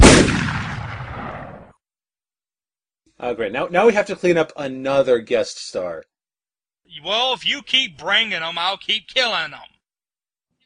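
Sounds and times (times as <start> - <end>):
shotgun blast sound effect: 0.0 - 1.7
speech: 3.2 - 6.1, 6.9 - 9.7.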